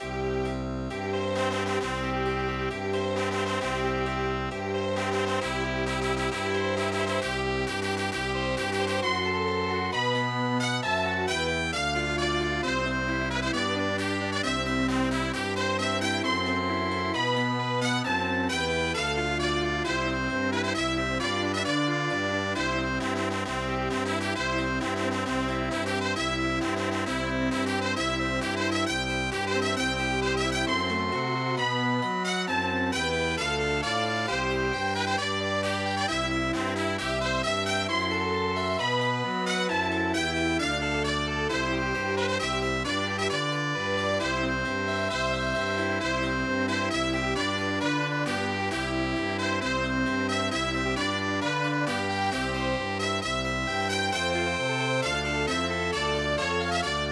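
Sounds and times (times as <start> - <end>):
chamber music: 0.0 - 57.1.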